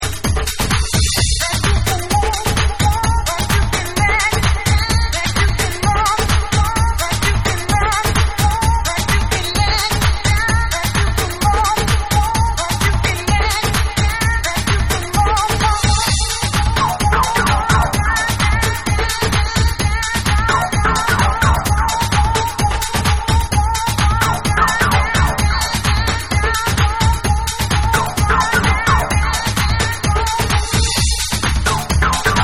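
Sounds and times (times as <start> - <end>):
dark dub music: 0.0 - 32.4.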